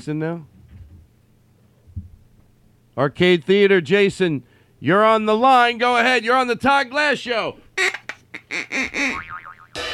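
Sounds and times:
speech: 0.0 - 0.6, 3.0 - 8.6
boing sound effect: 8.8 - 9.8.

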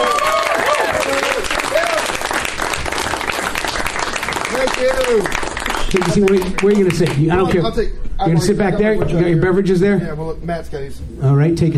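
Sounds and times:
scattered cheers and whoops: 0.0 - 2.3
audience applause: 0.0 - 7.2
speech: 5.1 - 11.7.

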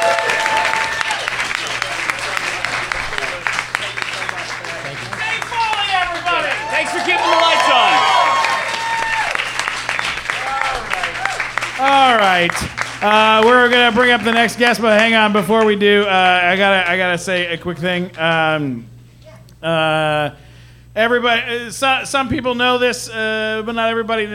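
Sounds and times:
audience applause: 0.0 - 17.0
speech: 12.4 - 18.9, 19.6 - 20.4, 21.0 - 24.3.

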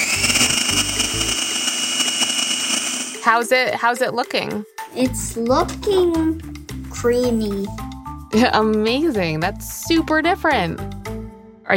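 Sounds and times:
food processor running: 0.0 - 3.2
speech: 3.2 - 11.0.

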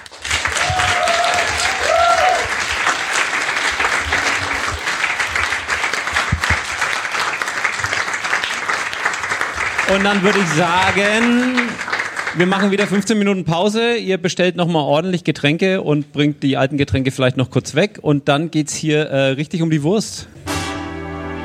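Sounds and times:
applause: 0.0 - 13.3
speech: 9.9 - 11.8, 12.4 - 20.4.

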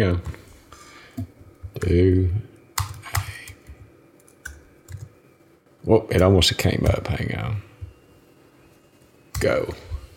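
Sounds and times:
speech: 0.0 - 0.4, 1.2 - 2.4, 5.8 - 7.7, 9.4 - 9.9
computer keyboard typing a Google search: 2.6 - 5.1.

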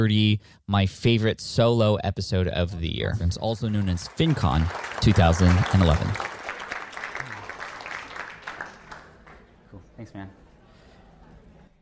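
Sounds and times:
speech: 0.0 - 6.3, 10.0 - 10.4
audience applause: 3.5 - 9.6.

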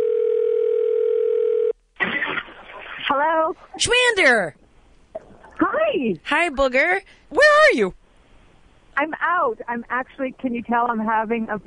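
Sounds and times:
telephone dial tone while placing a call: 0.0 - 1.8
short burst of noise: 2.0 - 3.3
speech: 3.2 - 4.6, 5.8 - 8.0, 9.0 - 11.6.

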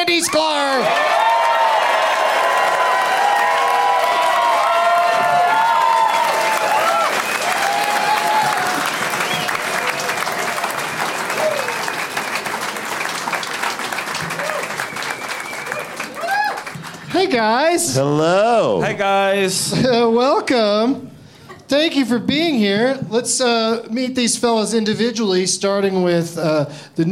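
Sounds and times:
audience applause for comedians coming on stage: 0.0 - 17.7
scattered whoops: 0.8 - 9.6, 14.3 - 14.9, 15.5 - 16.7
speech: 17.4 - 21.1, 21.7 - 27.1.

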